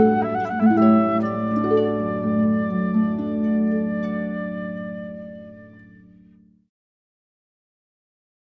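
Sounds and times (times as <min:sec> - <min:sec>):
harp: 0:00.0 - 0:06.5.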